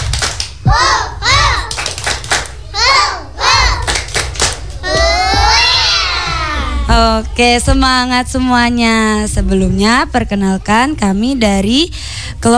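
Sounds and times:
hand clapping: 0:00.0 - 0:02.6, 0:03.5 - 0:05.5
group of children chanting: 0:00.6 - 0:01.9, 0:02.6 - 0:06.9
children shouting: 0:00.6 - 0:02.0, 0:02.6 - 0:04.1, 0:04.7 - 0:07.0
speech: 0:07.0 - 0:12.5.

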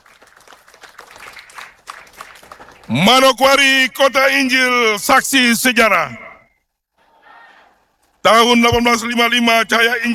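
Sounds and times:
audience applause: 0:00.0 - 0:03.1
speech: 0:02.9 - 0:06.2, 0:08.3 - 0:10.1.

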